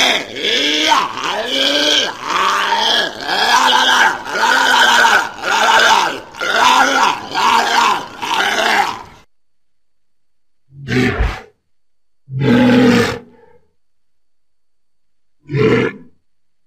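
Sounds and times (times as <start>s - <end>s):
walrus roaring: 0.0s - 9.2s, 10.7s - 11.5s, 12.3s - 13.6s, 15.4s - 16.1s.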